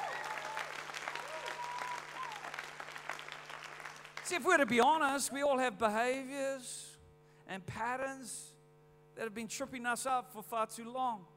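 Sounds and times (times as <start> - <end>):
faint tonal voices or whoops: 0.0 - 2.6
audience clapping: 0.0 - 4.8
low steady hum: 0.0 - 11.3
speech: 4.3 - 6.8, 7.5 - 8.6, 9.2 - 11.3.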